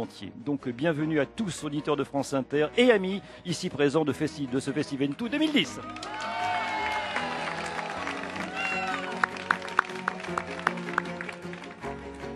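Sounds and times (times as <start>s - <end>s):
speech: 0.0s - 6.3s
crowd cheering and applauding: 5.6s - 12.3s.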